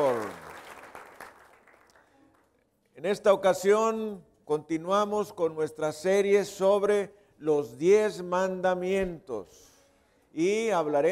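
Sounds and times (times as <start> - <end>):
audience applause: 0.0 - 2.5
speech: 3.0 - 9.7, 10.3 - 11.0.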